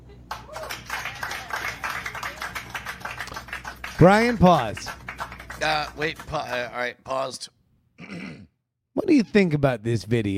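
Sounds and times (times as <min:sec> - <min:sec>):
people clapping: 0:00.3 - 0:06.9
speech: 0:04.0 - 0:05.0, 0:05.6 - 0:08.1, 0:09.1 - 0:10.3.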